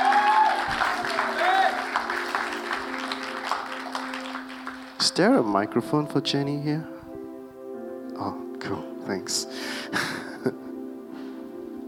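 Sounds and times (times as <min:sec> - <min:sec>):
audience applause: 0:00.0 - 0:05.3
speech: 0:05.2 - 0:07.0, 0:08.2 - 0:10.6.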